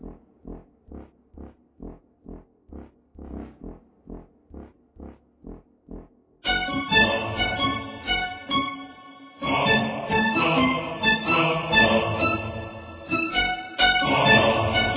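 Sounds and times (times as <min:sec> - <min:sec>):
strings: 0:06.5 - 0:14.9
dark choir: 0:06.6 - 0:14.9.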